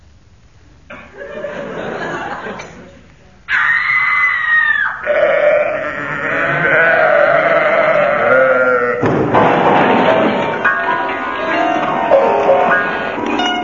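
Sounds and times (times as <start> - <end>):
laughter: 0.9 - 3.1, 9.3 - 13.5
person screaming after tripping over a sacrificial sheep: 3.5 - 9.0
sacrificial sheep bleating: 5.0 - 9.0.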